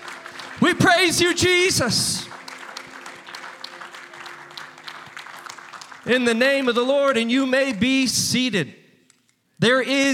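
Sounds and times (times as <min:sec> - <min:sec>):
audience hand clapping in praise: 0:00.0 - 0:07.8
speech: 0:00.6 - 0:02.2, 0:06.1 - 0:08.8, 0:09.6 - 0:10.1.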